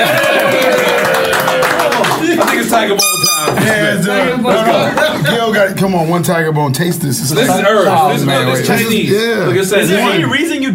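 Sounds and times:
round of applause: 0.0s - 2.8s
speech: 2.8s - 10.7s.

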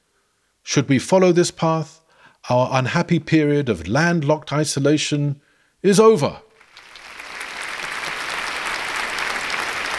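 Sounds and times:
speech: 0.7s - 6.5s
applause: 6.6s - 9.9s.

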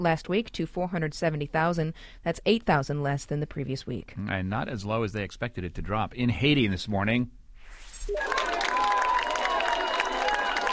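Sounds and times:
speech: 0.0s - 7.4s
crowd cheering at a rescue in Haiti: 8.1s - 10.7s.

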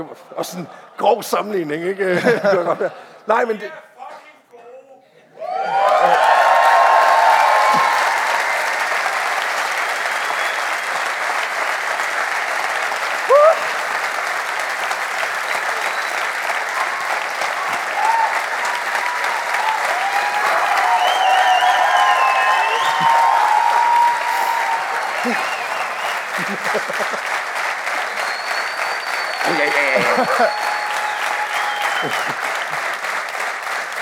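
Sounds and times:
speech: 0.0s - 3.9s
laughter: 2.0s - 3.3s, 5.6s - 6.6s, 24.3s - 27.6s, 29.4s - 30.9s, 31.9s - 33.0s
scattered cheers and whoop: 5.4s - 9.1s, 13.3s - 13.7s, 16.7s - 26.8s, 28.7s - 32.5s
crowd applauding: 5.4s - 33.9s.

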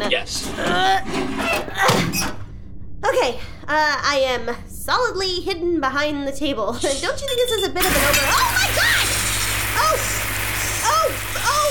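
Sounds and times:
speech: 0.1s - 1.4s, 3.2s - 8.6s
hot water spraying out: 7.8s - 11.7s.

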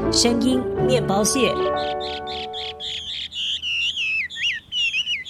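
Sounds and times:
speech: 0.2s - 2.5s
Taiwan hwamei singing: 1.0s - 5.2s.

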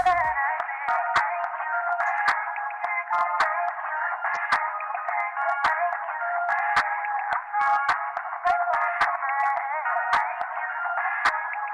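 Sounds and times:
pop song played down a telephone line: 0.0s - 11.7s.

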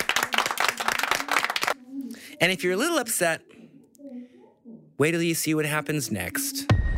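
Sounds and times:
applause from a small group: 0.0s - 1.8s
speech: 2.4s - 3.6s, 5.0s - 6.8s.

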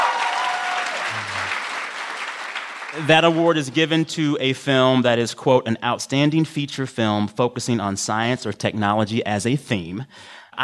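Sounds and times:
audience applause: 0.0s - 3.4s
speech: 2.9s - 10.6s.

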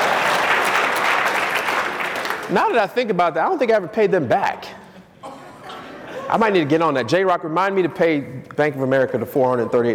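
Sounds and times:
audience applause: 0.0s - 2.8s
speech: 2.5s - 4.8s, 6.3s - 9.9s.

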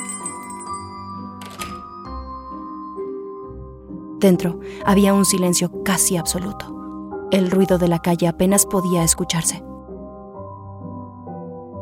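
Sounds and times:
small bell above a shop door: 0.0s - 2.1s
speech: 4.2s - 9.7s.

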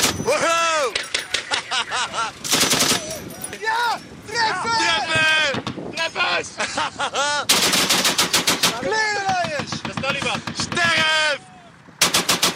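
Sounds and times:
excited people shouting: 0.0s - 1.5s, 2.8s - 6.5s, 8.6s - 11.8s
laughter: 0.3s - 8.1s
machine gun fire: 2.4s - 3.1s, 7.5s - 8.9s, 12.0s - 12.5s.

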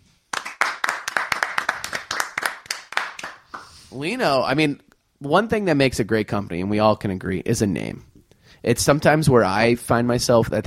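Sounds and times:
crowd clapping: 0.3s - 3.8s
speech: 3.9s - 10.6s.

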